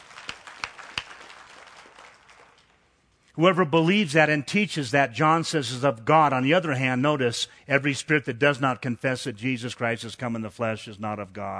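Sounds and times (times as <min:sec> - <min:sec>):
audience handclaps: 0:00.0 - 0:02.9
speech: 0:03.4 - 0:11.5.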